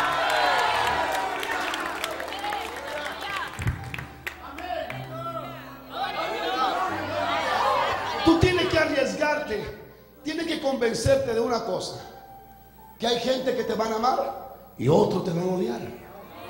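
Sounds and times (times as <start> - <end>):
hand claps: 0.0 - 4.8
scattered cheers: 0.0 - 8.7
audience shouting amen: 0.0 - 9.2
speech: 8.2 - 12.1, 13.0 - 16.0.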